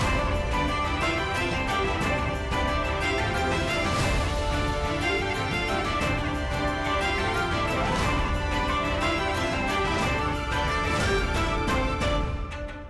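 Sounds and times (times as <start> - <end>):
pirate tavern ambience: 0.0 - 12.7.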